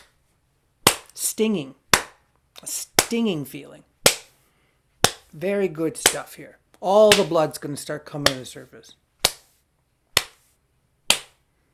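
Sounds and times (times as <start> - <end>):
hand slapping arm: 0.8 - 1.2, 1.9 - 3.3, 4.0 - 4.4, 5.0 - 5.4, 6.0 - 6.3, 7.1 - 7.4, 8.2 - 8.6, 9.2 - 11.4
speech: 1.3 - 1.8, 2.6 - 3.9, 5.3 - 9.0.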